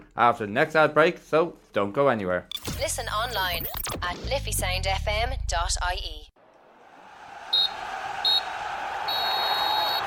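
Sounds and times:
speech: 0.2s - 6.3s
crowd noise: 6.4s - 10.0s
referee's full-time whistle: 7.5s - 10.0s.

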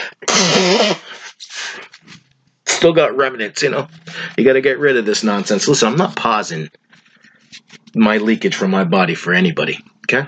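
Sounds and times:
nose blowing: 0.0s - 2.8s, 3.9s - 4.4s
speech: 0.4s - 1.0s, 2.8s - 6.8s, 7.9s - 10.2s.

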